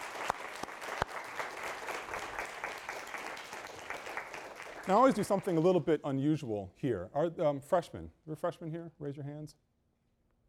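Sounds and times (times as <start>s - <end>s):
audience applause: 0.0s - 5.6s
speech: 4.9s - 9.7s.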